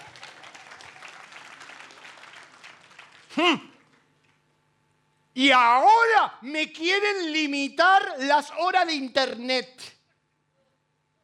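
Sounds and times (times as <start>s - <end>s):
audience applauding: 0.0s - 4.2s
speech: 3.4s - 3.7s, 5.4s - 10.0s.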